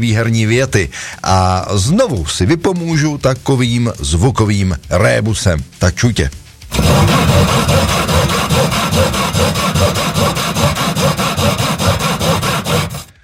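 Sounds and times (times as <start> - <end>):
speech: 0.0 - 12.1
sawing: 6.7 - 13.2.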